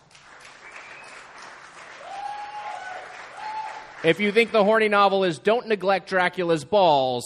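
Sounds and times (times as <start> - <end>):
audience applause: 0.0 - 4.7
speech: 4.0 - 7.2.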